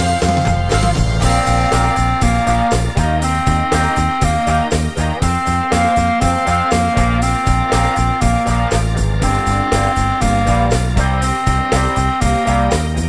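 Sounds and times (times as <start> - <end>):
clarinet: 0.1 - 12.9.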